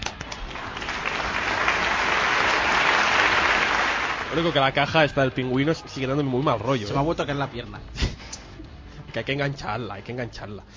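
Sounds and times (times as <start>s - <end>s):
applause: 0.0s - 5.5s
speech: 4.4s - 8.0s, 9.2s - 10.7s.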